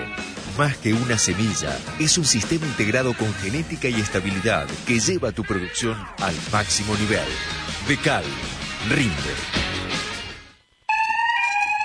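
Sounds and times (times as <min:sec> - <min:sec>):
speech: 0:00.6 - 0:09.6
electronic alarm system: 0:10.8 - 0:11.8.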